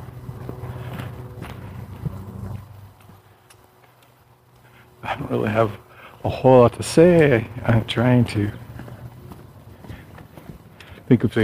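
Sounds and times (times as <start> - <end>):
low rumbling background: 0.0 - 3.4, 4.2 - 11.4
footsteps of a person walking: 0.0 - 4.7, 7.2 - 11.4
speech: 5.1 - 8.6, 11.1 - 11.4.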